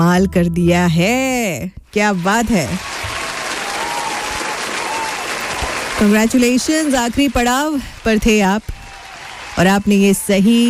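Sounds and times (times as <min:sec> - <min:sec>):
speech: 0:00.0 - 0:03.0, 0:06.0 - 0:08.8, 0:09.6 - 0:10.6
audience applause for correct answers on a Hindi quiz show: 0:02.2 - 0:10.6.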